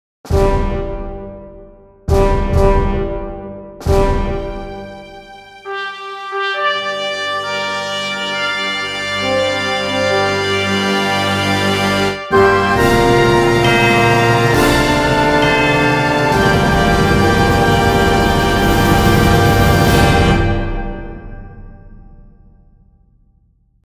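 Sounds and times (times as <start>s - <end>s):
fanfare intro: 2.1s - 22.0s.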